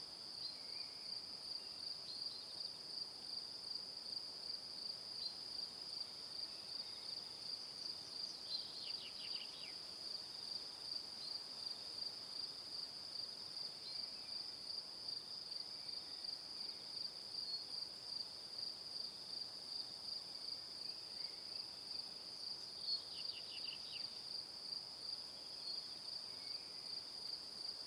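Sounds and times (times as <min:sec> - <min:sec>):
cricket chirping: 0:00.2 - 0:27.8.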